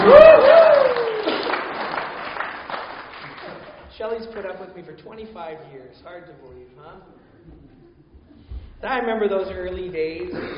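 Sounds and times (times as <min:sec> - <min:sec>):
audience clapping: 0:00.0 - 0:04.7
speech: 0:04.4 - 0:07.7, 0:08.8 - 0:10.5.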